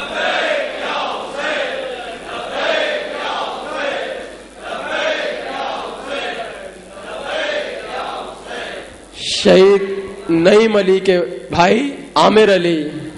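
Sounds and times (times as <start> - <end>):
crowd chanting a slogan at a gathering honouring martyrs' families: 0.0 - 9.0
speech: 9.4 - 13.0.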